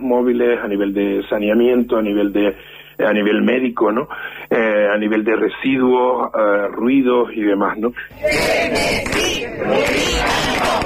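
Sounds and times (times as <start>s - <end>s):
speech: 0.1s - 10.8s
protesters shouting slogans at a demonstration: 8.2s - 10.8s.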